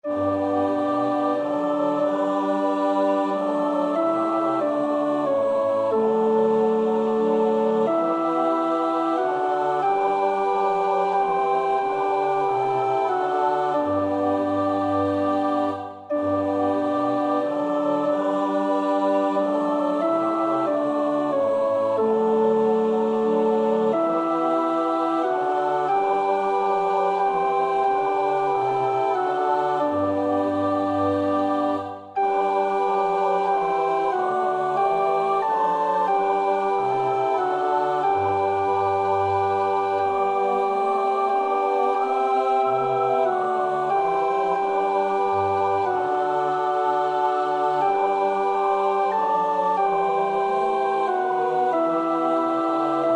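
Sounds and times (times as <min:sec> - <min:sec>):
alto choir part practice singing: 0:00.0 - 0:53.1.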